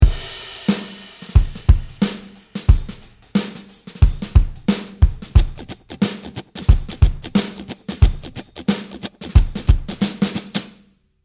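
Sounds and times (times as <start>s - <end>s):
guitar playing shuffle rhythm: 2.7s - 10.8s.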